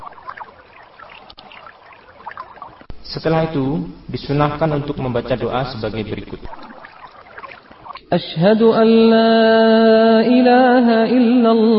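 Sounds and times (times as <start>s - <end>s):
water trickling as feet are washed: 0.0s - 8.0s
speech: 3.1s - 6.6s, 8.1s - 11.7s.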